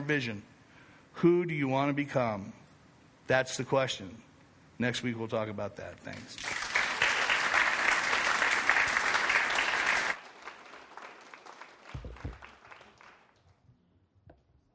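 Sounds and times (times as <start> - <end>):
speech: 0.1 - 0.5, 1.2 - 2.6, 3.3 - 6.7
room full of people applauding: 6.4 - 13.4.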